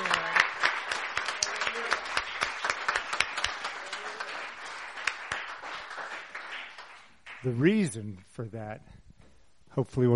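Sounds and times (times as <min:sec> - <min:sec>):
audience cheering and applauding: 0:00.0 - 0:07.6
speech: 0:07.4 - 0:09.0, 0:09.8 - 0:10.1.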